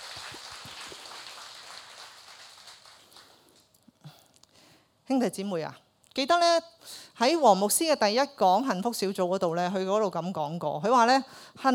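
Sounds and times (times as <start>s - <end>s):
audience applauding: 0.0s - 3.7s
speech: 5.1s - 11.7s.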